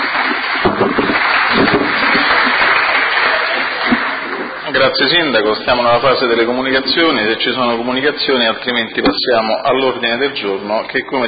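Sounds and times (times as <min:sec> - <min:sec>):
audience applause: 0:00.0 - 0:09.0
speech: 0:04.8 - 0:11.2.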